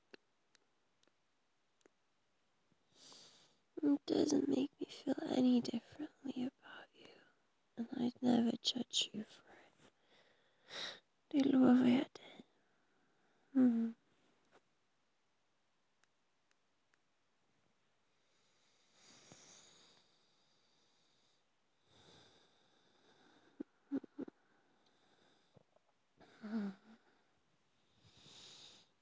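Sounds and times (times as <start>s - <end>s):
person breathing: 2.9s - 3.6s, 9.5s - 11.0s, 18.2s - 23.7s, 24.3s - 29.0s
speech: 3.8s - 6.5s, 8.0s - 9.4s, 10.7s - 12.2s, 13.6s - 14.0s.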